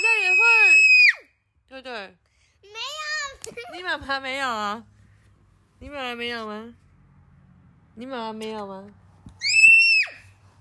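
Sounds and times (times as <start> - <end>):
child screaming: 0.0 - 1.3, 9.4 - 10.3
speech: 3.9 - 4.9, 5.8 - 6.8, 8.0 - 9.0.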